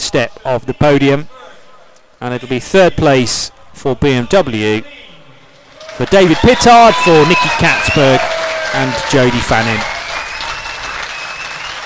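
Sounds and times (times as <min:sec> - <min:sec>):
speech: 0:00.1 - 0:01.4, 0:02.2 - 0:05.0, 0:06.0 - 0:09.9
crowd applause at race podium ceremony: 0:05.8 - 0:11.8.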